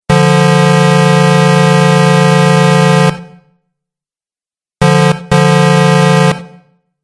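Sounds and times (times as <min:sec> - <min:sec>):
truck horn: 0:00.1 - 0:03.4, 0:04.8 - 0:06.8.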